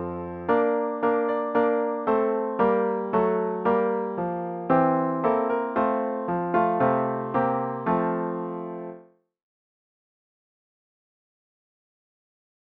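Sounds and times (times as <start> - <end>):
solo piano: 0.0 - 9.1.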